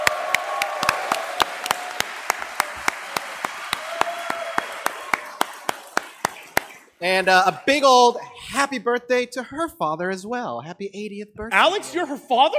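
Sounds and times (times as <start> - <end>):
round of applause: 0.0 - 7.7
speech: 7.0 - 12.5.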